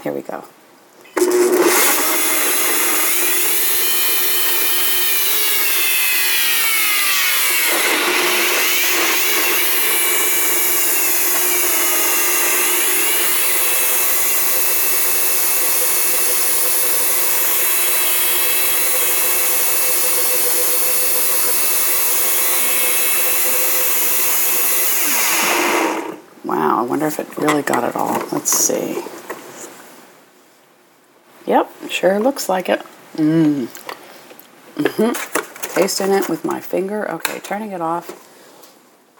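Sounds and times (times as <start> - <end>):
speech: 0.0 - 0.6, 27.1 - 29.1, 31.5 - 33.8, 34.9 - 38.2
blender running on smoothie setting: 1.2 - 26.2.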